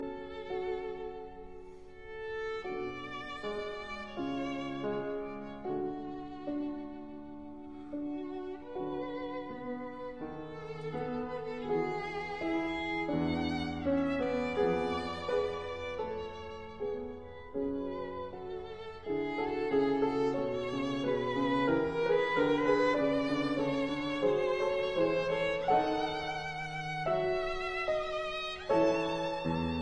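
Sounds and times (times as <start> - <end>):
serenade in E major larghetto: 0.0 - 29.7.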